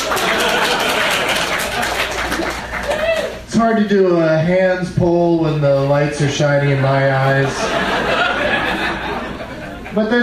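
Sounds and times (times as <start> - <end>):
laughter: 0.0 - 3.1, 6.7 - 10.2
crowd clapping: 0.0 - 3.5
speech: 3.7 - 8.2, 10.0 - 10.2.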